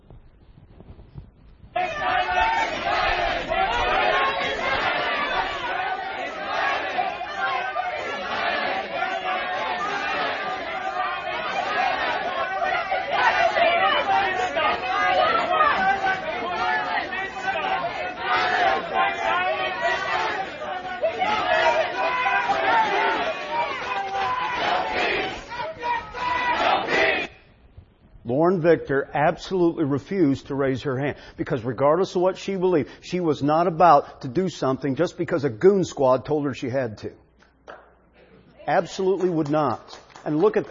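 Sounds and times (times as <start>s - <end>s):
crowd of protesters shouting and chanting: 1.8s - 27.5s
speech: 28.6s - 37.2s, 38.7s - 40.6s.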